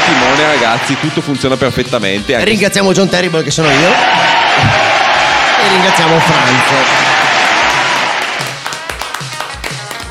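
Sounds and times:
speech: 0.4 - 5.0, 5.6 - 7.1
applause: 5.6 - 10.0.

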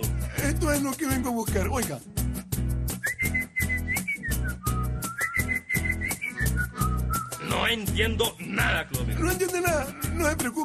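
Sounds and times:
rhythmic backing music with percussion and bass: 0.0 - 10.6
speech: 0.6 - 2.2, 7.6 - 10.6
person whistling a short lively tune: 2.9 - 7.5.

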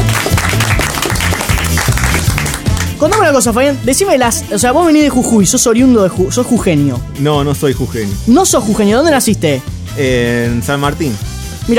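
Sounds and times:
audience applause welcoming a guest onto a show: 0.0 - 3.0
speech: 3.3 - 11.7.

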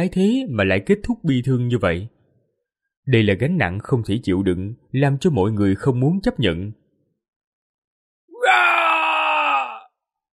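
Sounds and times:
speech: 0.0 - 2.2, 3.1 - 6.8
loud anguished roar: 8.4 - 9.9.

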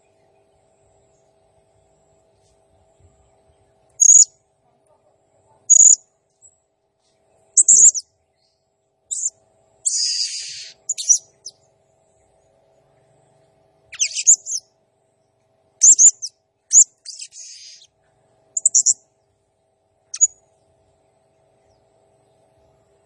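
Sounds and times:
blue-crowned hanging parrot chirping: 4.0 - 4.3, 5.7 - 6.0, 7.6 - 8.0, 9.1 - 9.3, 9.9 - 11.4, 13.9 - 14.6, 15.8 - 17.9, 18.6 - 19.0.

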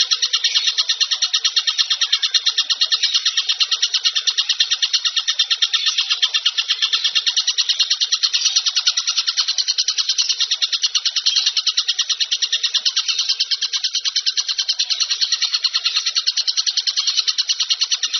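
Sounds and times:
bird singing a high rapid chatter: 0.0 - 18.1.

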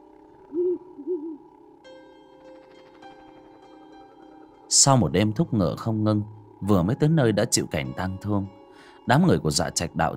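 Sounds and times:
owl hooting: 0.0 - 1.7
speech: 4.7 - 10.1.

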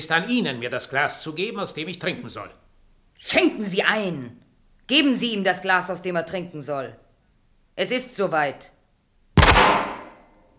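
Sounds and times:
speech: 0.0 - 2.6, 3.2 - 7.0, 7.8 - 8.8
gunshot: 9.4 - 10.4.

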